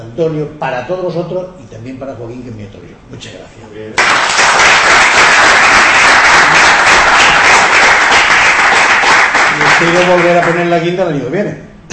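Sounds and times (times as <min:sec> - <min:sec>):
speech: 0:00.2 - 0:07.2, 0:09.8 - 0:11.8
audience applause: 0:04.0 - 0:10.7.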